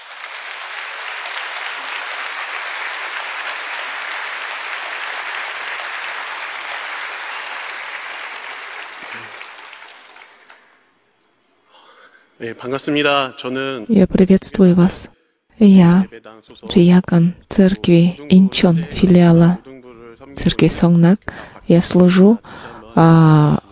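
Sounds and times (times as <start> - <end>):
church gathering applause: 0.0 - 10.9
speech: 12.4 - 19.7, 20.4 - 23.6.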